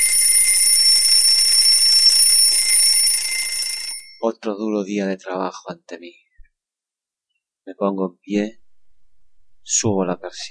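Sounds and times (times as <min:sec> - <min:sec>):
alarm clock ringing: 0:00.0 - 0:04.2
speech: 0:04.2 - 0:06.2, 0:07.7 - 0:08.6, 0:09.7 - 0:10.4.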